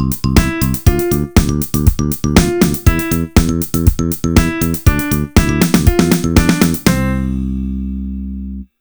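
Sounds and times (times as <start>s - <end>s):
piano: 0.0s - 8.7s.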